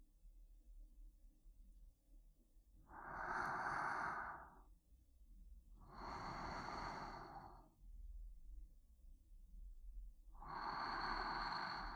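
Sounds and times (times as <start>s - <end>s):
sleeping breathing: 3.0s - 4.6s, 5.9s - 7.6s, 10.4s - 11.9s.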